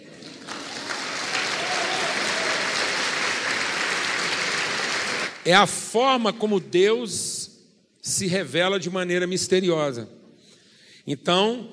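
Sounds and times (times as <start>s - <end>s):
audience applause: 0.0s - 5.5s
speech: 5.5s - 7.3s, 8.0s - 10.2s, 11.1s - 11.7s.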